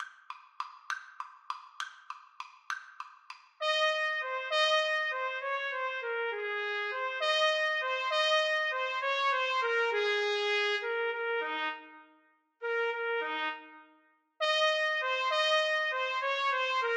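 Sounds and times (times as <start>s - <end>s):
trumpet duet: 3.6s - 16.9s.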